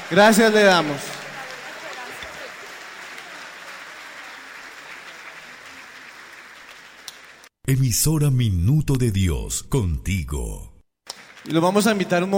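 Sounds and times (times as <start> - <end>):
audience applause: 0.0 - 7.6, 11.1 - 12.3
speech: 0.1 - 1.2, 7.7 - 10.7, 11.4 - 12.3.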